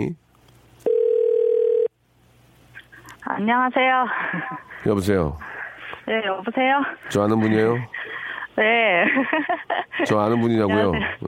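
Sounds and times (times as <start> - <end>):
speech: 0.0 - 0.2, 3.4 - 11.2
telephone ring tone: 0.8 - 1.9
laughter: 4.1 - 4.9, 7.2 - 11.2.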